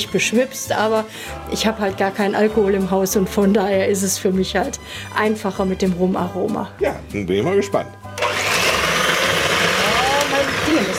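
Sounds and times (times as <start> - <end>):
speech: 0.0 - 8.2
kitchen mixer running: 8.2 - 10.9.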